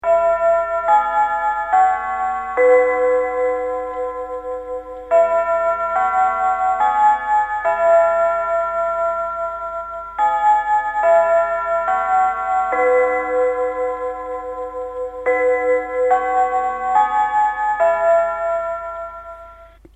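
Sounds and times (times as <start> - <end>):
chime: 0.0 - 19.8.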